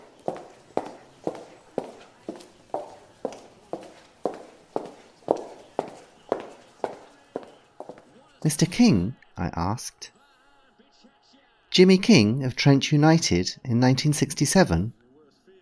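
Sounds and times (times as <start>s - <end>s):
footsteps walking across a room: 0.0s - 8.9s
speech: 8.5s - 10.2s, 11.8s - 15.0s.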